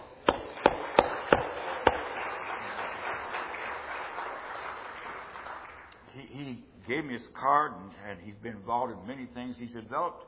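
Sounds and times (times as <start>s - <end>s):
loud sharp hand claps: 0.0s - 6.0s
speech: 6.9s - 10.2s.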